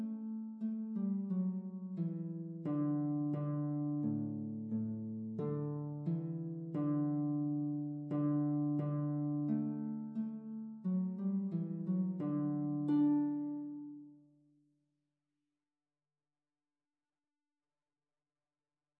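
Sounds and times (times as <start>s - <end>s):
folk harp playing a round: 0.0s - 14.2s.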